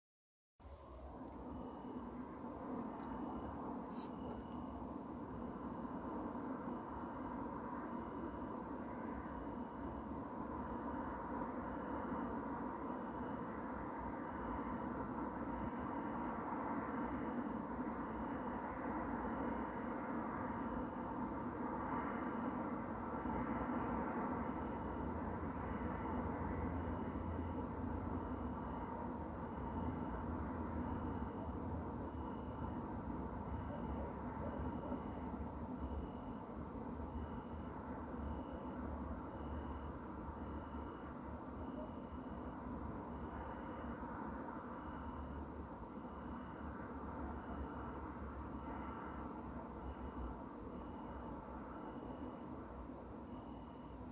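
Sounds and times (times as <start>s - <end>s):
quiet night city background: 0.6s - 54.0s.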